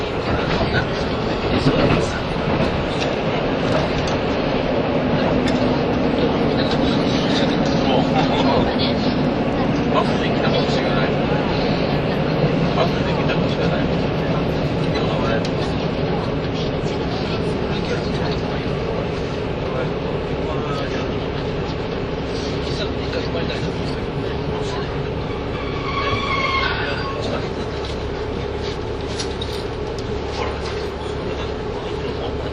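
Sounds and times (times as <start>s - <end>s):
KiHa 85 series Hida No. 1 train running: 0.0s - 32.5s
faint voices: 0.0s - 32.5s
brief bright squeal: 25.3s - 27.2s.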